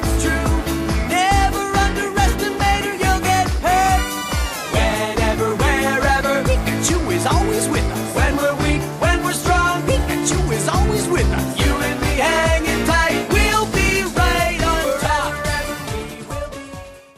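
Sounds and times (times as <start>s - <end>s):
man singing opening song in English: 0.0s - 16.8s.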